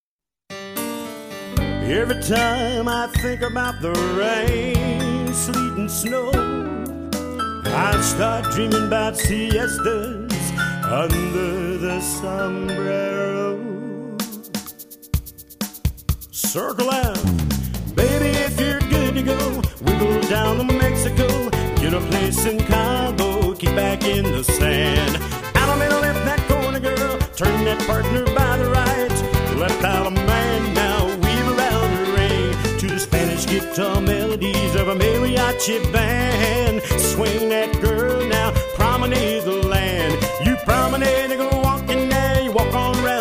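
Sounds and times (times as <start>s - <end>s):
vocals: 1.6s - 15.0s, 16.2s - 43.1s.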